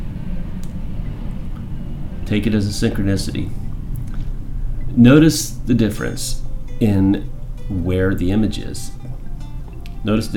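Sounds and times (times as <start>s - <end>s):
plane flying overhead: 0.0s - 10.3s
speech: 2.3s - 3.6s, 5.0s - 9.0s, 10.0s - 10.3s.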